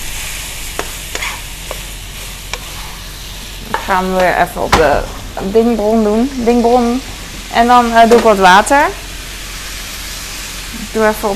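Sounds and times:
meat sizzling in a hot pan: 0:00.0 - 0:11.3
utensil scraping and tapping pan while stirring meat: 0:00.8 - 0:01.9, 0:02.5 - 0:02.9
speech: 0:03.9 - 0:09.0, 0:10.7 - 0:11.3.

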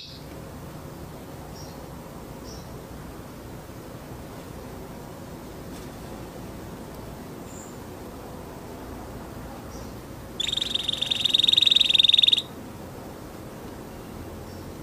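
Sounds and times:
orange canary chirping: 0:00.0 - 0:00.2, 0:09.7 - 0:12.5
orange canary trilling: 0:00.0 - 0:00.2, 0:10.4 - 0:12.5.

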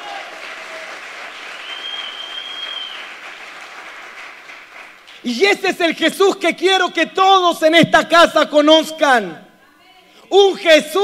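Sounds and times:
audience applause: 0:00.0 - 0:05.2
high whistle-like tone: 0:01.6 - 0:03.0
speech: 0:05.2 - 0:09.4, 0:10.3 - 0:11.0.

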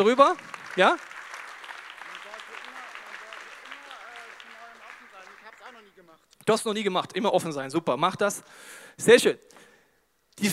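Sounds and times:
speech: 0:00.0 - 0:01.1, 0:06.4 - 0:09.6, 0:10.4 - 0:10.5
audience applause: 0:00.0 - 0:06.1.

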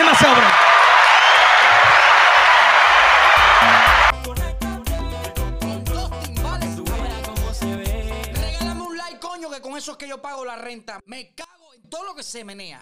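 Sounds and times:
audience applause: 0:00.0 - 0:04.1
punchy rhythmic music track with a thumping beat: 0:03.3 - 0:08.8
speech: 0:10.2 - 0:12.8.

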